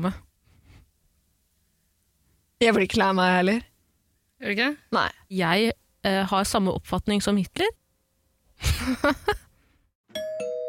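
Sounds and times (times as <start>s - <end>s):
speech: 0.0s - 0.3s, 2.6s - 3.7s, 4.4s - 7.8s, 8.6s - 9.4s
two-note ding-dong doorbell chime: 10.1s - 10.6s.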